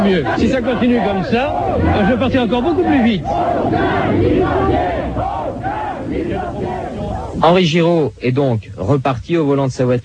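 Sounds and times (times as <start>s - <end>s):
speech: 0.0s - 6.8s, 7.4s - 10.0s
crowd shouting and chanting: 0.0s - 7.4s.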